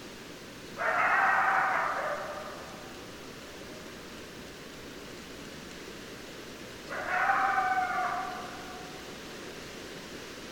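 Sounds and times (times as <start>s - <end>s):
hiss: 0.0s - 10.5s
coyote chorus howling: 0.8s - 3.0s, 6.9s - 9.1s.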